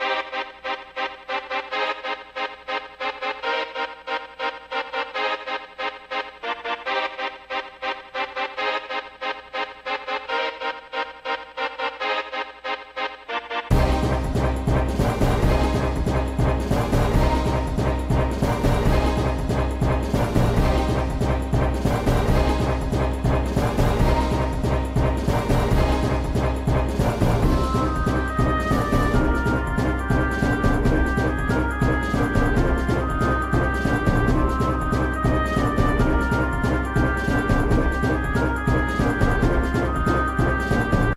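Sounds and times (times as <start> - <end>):
orchestral boss music: 0.0 - 41.1.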